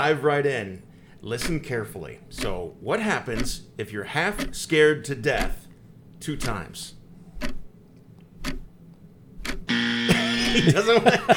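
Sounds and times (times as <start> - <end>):
speech: 0.0 - 5.6, 6.2 - 7.6, 10.5 - 11.3
game show buzzer: 9.7 - 11.0
laughter: 10.1 - 11.3.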